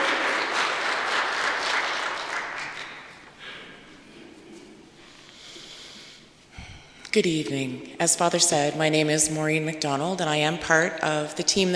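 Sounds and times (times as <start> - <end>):
audience applause: 0.0 - 3.3
speech: 7.1 - 11.7.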